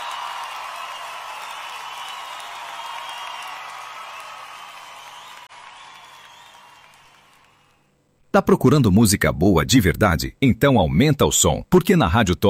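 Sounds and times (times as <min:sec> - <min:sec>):
audience clapping: 0:00.0 - 0:07.9
speech: 0:08.4 - 0:12.4.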